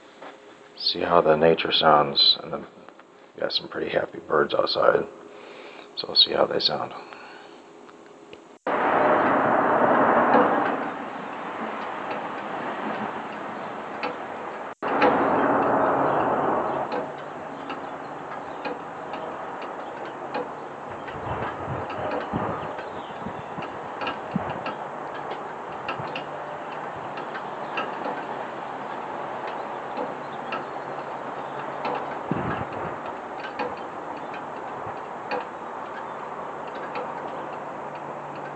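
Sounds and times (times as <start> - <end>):
distant traffic: 0.0 - 38.5
speech: 0.8 - 2.8, 3.4 - 5.2, 6.0 - 7.1
dripping downspouts: 8.7 - 38.5.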